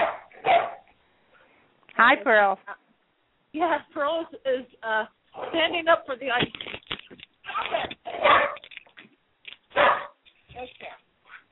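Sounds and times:
puppy barking: 0:00.0 - 0:00.9, 0:07.5 - 0:08.6, 0:09.7 - 0:10.2
speech: 0:02.0 - 0:02.8, 0:03.5 - 0:06.7.

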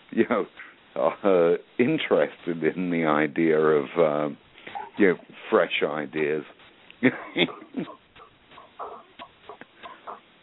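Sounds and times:
speech: 0:00.2 - 0:04.4, 0:05.0 - 0:08.0
golden retriever dog in the background: 0:04.7 - 0:05.1, 0:07.4 - 0:10.2.

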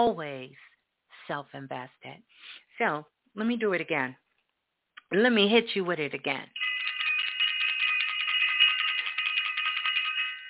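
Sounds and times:
speech: 0:00.0 - 0:00.7, 0:01.3 - 0:04.2, 0:05.1 - 0:06.7
bright metallic bell ringing: 0:06.6 - 0:10.4.

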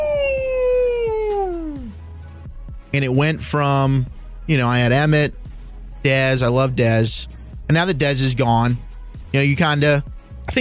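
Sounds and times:
dog howling: 0:00.0 - 0:01.9
speech: 0:02.9 - 0:05.4, 0:06.0 - 0:10.6.

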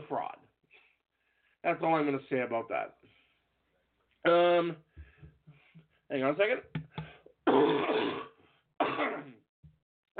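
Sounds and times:
speech: 0:00.1 - 0:00.4, 0:01.6 - 0:03.2, 0:04.2 - 0:04.9, 0:06.1 - 0:08.3
person coughing: 0:07.5 - 0:09.4.

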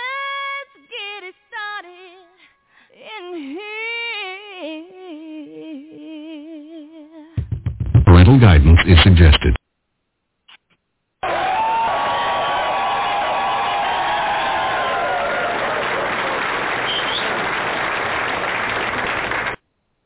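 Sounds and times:
speech: 0:08.3 - 0:09.6
crowd applause and cheering with whoops: 0:11.2 - 0:19.6.

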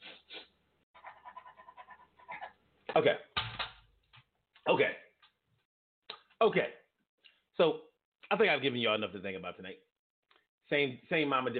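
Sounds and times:
person imitating sniffing: 0:00.0 - 0:00.5
speech: 0:03.0 - 0:03.3, 0:04.7 - 0:05.0, 0:06.4 - 0:06.8, 0:07.6 - 0:09.9, 0:10.7 - 0:11.5.

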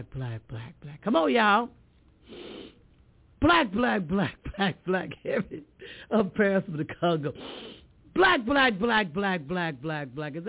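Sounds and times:
speech: 0:00.0 - 0:02.8, 0:03.4 - 0:10.4
deep breath drawn in through the nose: 0:02.2 - 0:02.8, 0:07.4 - 0:07.9.

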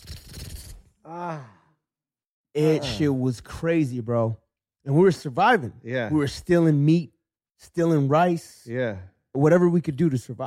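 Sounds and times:
voice imitating roaches falling on a floor: 0:00.0 - 0:00.9
speech: 0:01.1 - 0:01.6, 0:02.6 - 0:10.4.

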